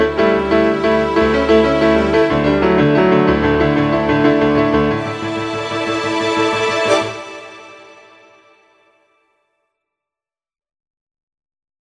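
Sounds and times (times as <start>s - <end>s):
piano arpeggio: 0.0s - 8.6s.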